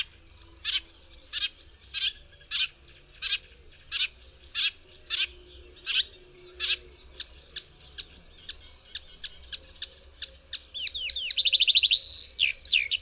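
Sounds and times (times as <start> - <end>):
songbird mimicking tree sparrow and white wagtail: 0.0 - 12.9.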